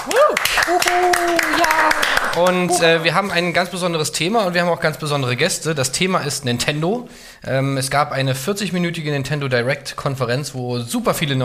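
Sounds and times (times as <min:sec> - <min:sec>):
hand claps: 0:00.0 - 0:02.9
person whooping and cheering: 0:00.0 - 0:02.9
speech: 0:00.0 - 0:11.4.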